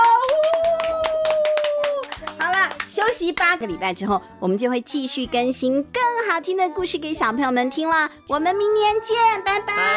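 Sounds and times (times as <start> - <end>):
hand clapping: 0.0 - 3.6
speech: 3.2 - 9.9.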